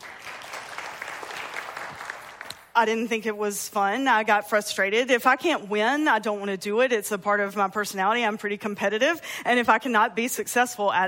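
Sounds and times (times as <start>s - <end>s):
crowd clapping: 0.0s - 2.7s
speech: 2.8s - 11.0s.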